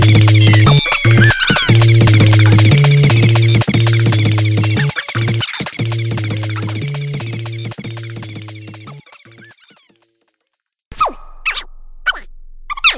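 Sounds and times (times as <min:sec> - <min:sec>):
music beat: 0:00.0 - 0:10.2.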